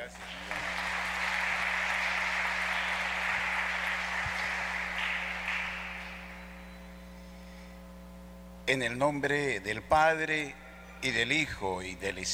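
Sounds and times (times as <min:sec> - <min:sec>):
applause: 0:00.0 - 0:06.7
speech: 0:08.7 - 0:12.3.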